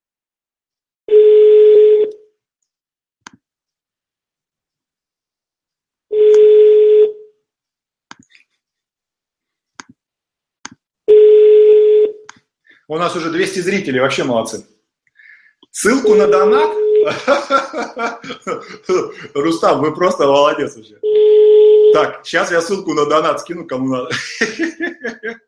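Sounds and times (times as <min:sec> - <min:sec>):
telephone line tone beeps: 0:01.1 - 0:02.2, 0:06.1 - 0:07.2, 0:11.1 - 0:12.2, 0:16.0 - 0:17.1, 0:21.0 - 0:22.0
speech: 0:12.9 - 0:14.7, 0:15.7 - 0:25.4
laughter: 0:17.0 - 0:19.6, 0:24.1 - 0:25.4.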